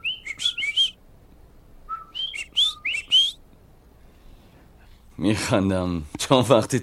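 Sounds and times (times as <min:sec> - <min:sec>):
coqui tree frogs calling: 0:00.0 - 0:01.0, 0:02.1 - 0:03.4
speech: 0:05.2 - 0:06.8.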